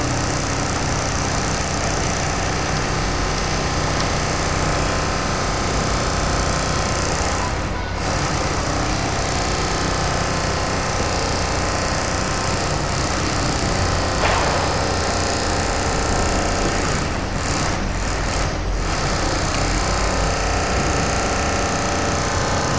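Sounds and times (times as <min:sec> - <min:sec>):
construction ambience: 0:00.0 - 0:22.7.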